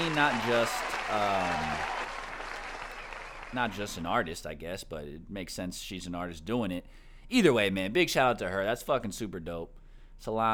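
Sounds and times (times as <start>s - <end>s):
speech: 0.0s - 2.0s, 3.5s - 10.5s
round of applause: 0.0s - 4.2s.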